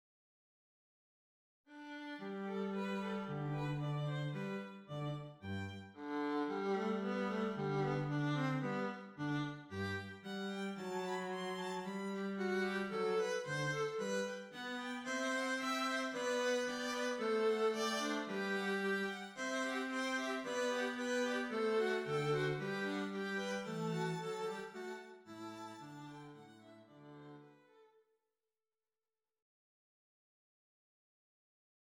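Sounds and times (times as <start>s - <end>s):
strings playing counterpoint: 2.6s - 27.5s.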